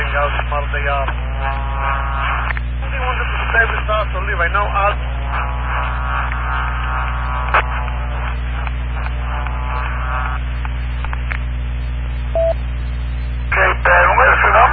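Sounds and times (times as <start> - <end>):
radio frequency jammer interference hum and buzz: 0.0 - 14.7
speech: 4.0 - 5.2
short sharp beeping tone bursts: 12.3 - 12.6.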